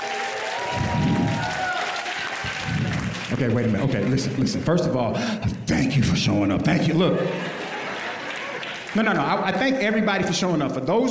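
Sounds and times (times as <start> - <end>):
stand-up comedy audience cheering and applauding: 0.0 - 4.8, 7.6 - 10.2
speech: 3.4 - 7.6, 9.0 - 11.0
laughter: 7.0 - 9.7.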